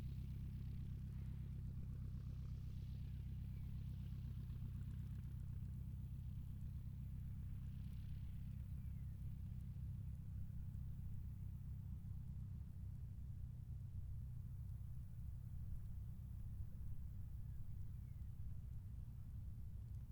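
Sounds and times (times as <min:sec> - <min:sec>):
CAC CA-16 Wirraway aircraft taxiing distant: 0:00.0 - 0:20.0.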